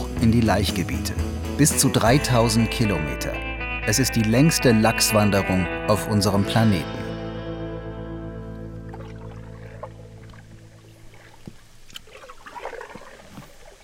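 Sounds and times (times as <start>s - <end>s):
speech: 0.2s - 7.0s
steady low hum: 7.2s - 11.9s
canoe paddle strokes splashing in river water: 8.4s - 13.8s.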